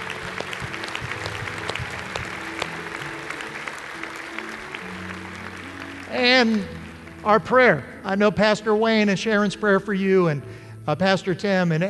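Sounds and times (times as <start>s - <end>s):
audience applause: 0.0s - 7.2s
speech: 6.2s - 11.8s.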